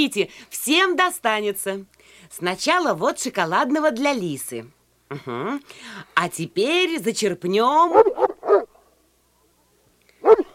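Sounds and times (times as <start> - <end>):
speech: 0.0 - 8.4
dog on a leash barking loudly while straining against it: 7.9 - 8.8, 10.2 - 10.5.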